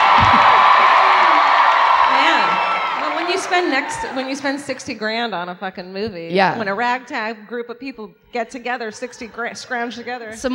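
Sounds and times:
audience cheering: 0.0 - 5.0
speech: 3.6 - 10.5.

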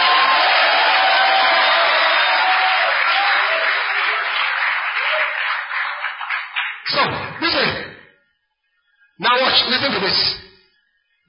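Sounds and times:
audience shouting: 0.0 - 4.3
audience clapping: 0.0 - 7.8
speech: 9.8 - 10.4.

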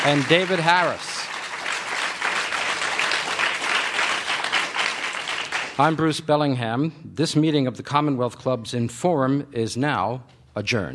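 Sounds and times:
speech: 0.0 - 1.1, 5.8 - 10.9
audience applause: 0.0 - 5.9.

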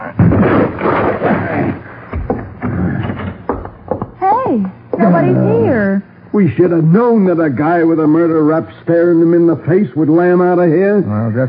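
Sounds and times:
heavy booming thuds and crashes of a door being forced: 0.1 - 4.2
wood splintering: 0.2 - 3.7
door being forced open: 0.2 - 4.2
speech: 5.0 - 11.4.

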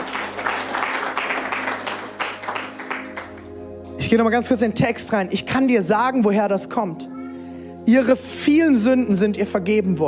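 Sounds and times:
crowd applauding: 0.0 - 3.6
speech: 4.0 - 7.1, 7.9 - 10.0.

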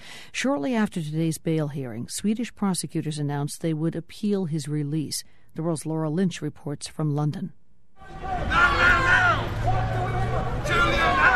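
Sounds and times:
speech: 0.4 - 8.6
protesters shouting outside courthouse: 8.0 - 11.3.

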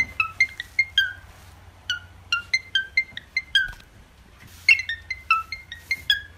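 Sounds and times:
cockatiel mimicking a phone ringtone: 0.0 - 1.2, 1.9 - 3.8, 4.7 - 6.3.

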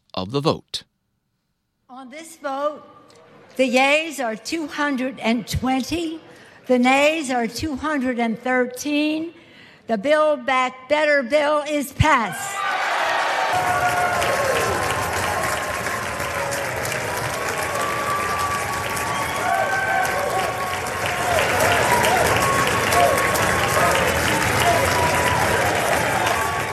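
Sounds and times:
speech: 0.2 - 0.9, 1.9 - 12.8
applause from the Democratic side of the House chamber: 12.7 - 26.7.

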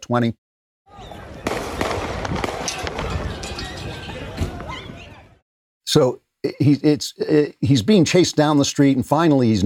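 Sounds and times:
speech: 0.1 - 1.1, 5.9 - 9.6
gunshots in a video: 1.4 - 4.3.

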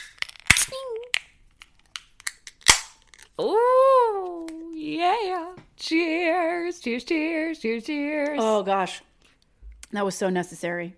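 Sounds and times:
beer cans cracking open: 0.0 - 3.4
speech: 4.9 - 9.1, 9.9 - 10.9.

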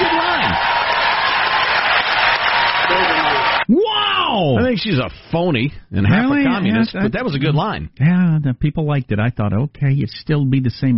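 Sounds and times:
crowd cheering and applauding: 0.0 - 3.7
speech: 4.4 - 10.9.

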